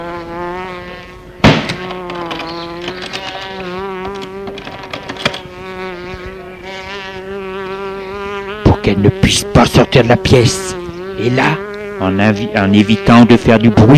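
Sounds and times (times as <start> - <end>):
fly buzzing around a room: 0.0 - 13.9
sharp knock: 1.4 - 3.1
speech: 8.9 - 13.9.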